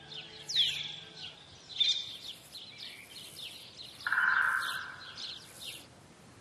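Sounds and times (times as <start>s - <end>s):
Iberian magpie calls: 4.0s - 5.8s.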